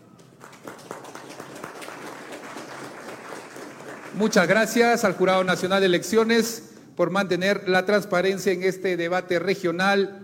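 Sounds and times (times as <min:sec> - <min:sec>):
audience applause: 0:00.2 - 0:04.7
speech: 0:04.2 - 0:10.2.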